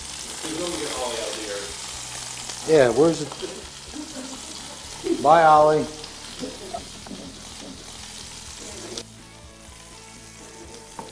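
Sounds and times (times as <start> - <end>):
food searing in a hot pan: 0.0 - 11.1
speech: 2.6 - 4.1, 5.2 - 7.0
laughter: 3.4 - 5.6, 6.3 - 7.8.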